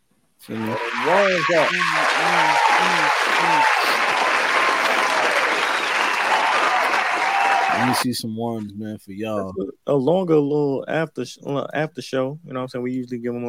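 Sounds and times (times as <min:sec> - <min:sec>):
round of applause: 0:00.4 - 0:08.0
speech: 0:00.5 - 0:04.4, 0:07.8 - 0:13.4
short pitched whoop-like tones: 0:00.6 - 0:08.0.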